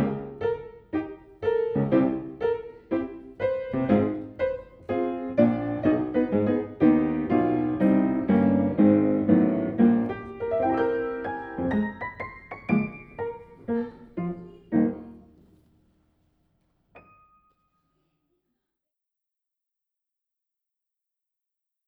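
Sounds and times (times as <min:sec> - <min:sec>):
grand battement ballet music: 0:00.0 - 0:15.6.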